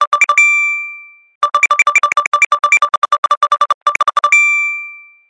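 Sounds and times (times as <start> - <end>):
Apple Pay payment ping: 0.1 - 2.8, 4.3 - 5.2.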